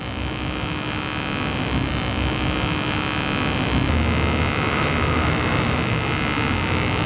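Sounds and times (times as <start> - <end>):
homemade proximity sensor buzzing electronic tone: 0.0 - 7.0.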